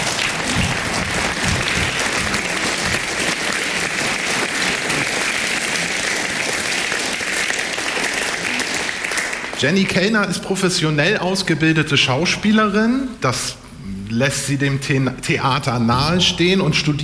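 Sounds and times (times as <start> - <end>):
thunderous applause: 0.0 - 9.8
speech: 9.6 - 17.0.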